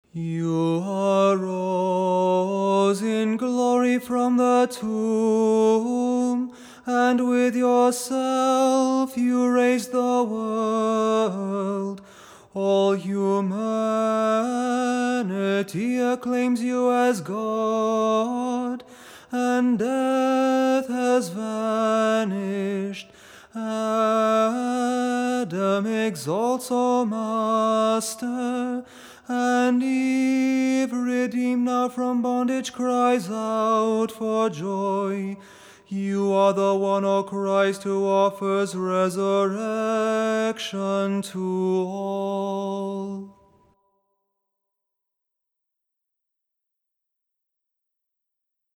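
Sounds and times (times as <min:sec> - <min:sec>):
tone six kontakion chant: 0:00.1 - 0:43.4.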